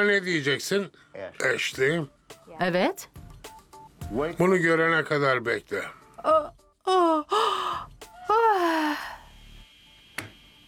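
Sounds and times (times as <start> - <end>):
speech: 0.0 - 3.2, 4.1 - 7.5
person yawning in a recording: 6.3 - 9.2.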